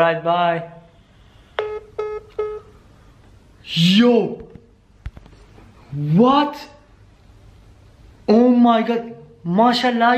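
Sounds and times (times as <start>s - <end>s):
speech: 0.0s - 0.8s, 3.6s - 4.5s, 5.9s - 6.8s, 8.3s - 10.1s
telephone keypad dialing beeps: 1.6s - 2.7s.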